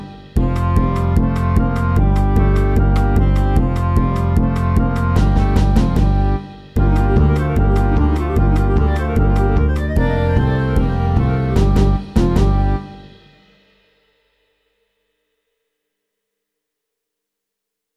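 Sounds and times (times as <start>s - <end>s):
fast Balkan stomp music: 0.4s - 12.8s.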